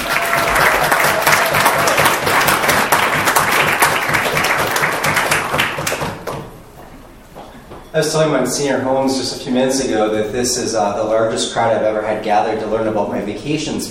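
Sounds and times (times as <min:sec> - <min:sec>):
audience applause: 0:00.0 - 0:06.5
speech: 0:08.0 - 0:13.8.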